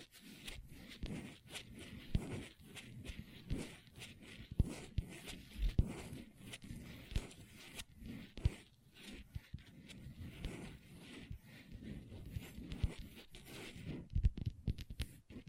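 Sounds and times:
long nails scratching a tabletop: 0.0s - 15.4s
long nails tapping on a tabletop: 14.1s - 15.4s.

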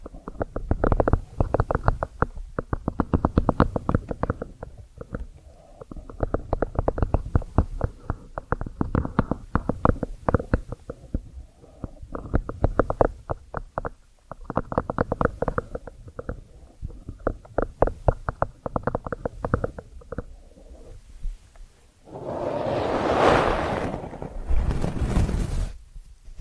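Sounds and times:
ear cleaning crackly taps and scratches: 0.0s - 21.7s
louder smoother rushing rub: 22.1s - 25.6s.

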